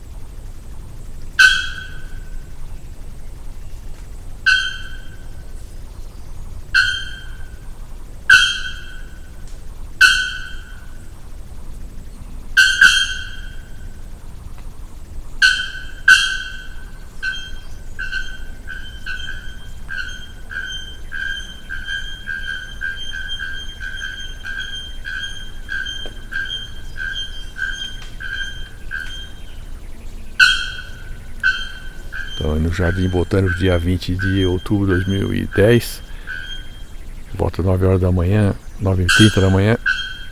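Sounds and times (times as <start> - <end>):
low background rumble: 0.0 - 40.3
bare-throated bellbird ringing metallic calls: 1.4 - 2.6, 4.4 - 14.2, 15.2 - 40.3
speech: 32.5 - 36.1, 37.4 - 39.8.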